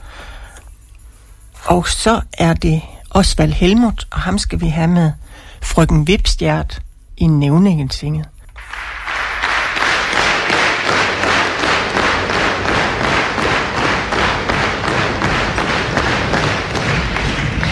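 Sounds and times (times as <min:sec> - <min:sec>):
speech: 0:01.7 - 0:08.3
audience applause clapping in unison: 0:08.6 - 0:17.7.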